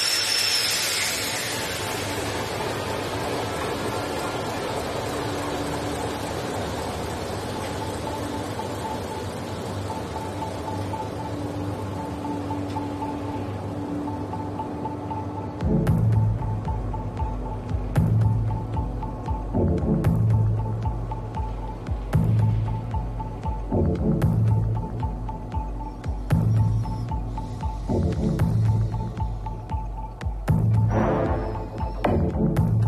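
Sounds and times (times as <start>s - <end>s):
8ZL40 boat diesel engine starting up: 0.0s - 32.8s.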